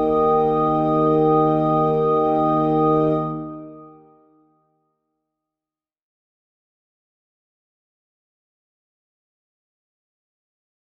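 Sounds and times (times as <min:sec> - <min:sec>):
organ music: 0:00.0 - 0:04.1.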